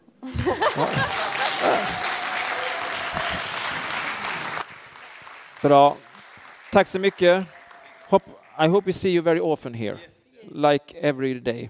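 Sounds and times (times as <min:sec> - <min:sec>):
people laughing: 0:00.2 - 0:02.3
crowd applauding: 0:00.3 - 0:09.2
people whooping: 0:00.6 - 0:04.6
speech: 0:05.6 - 0:06.0, 0:06.7 - 0:11.6.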